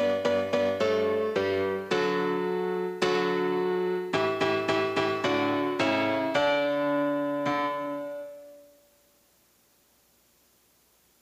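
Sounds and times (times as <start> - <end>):
Latin tango piano: 0.0 - 8.7.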